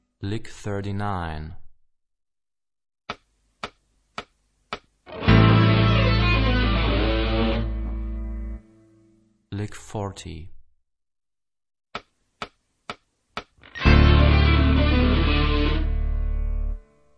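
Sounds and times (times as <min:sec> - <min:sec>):
rock guitar: 0:05.1 - 0:08.6, 0:13.6 - 0:16.8.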